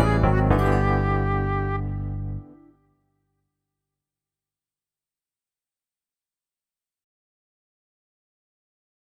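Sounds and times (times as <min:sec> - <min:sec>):
instrumental music: 0:00.0 - 0:03.0.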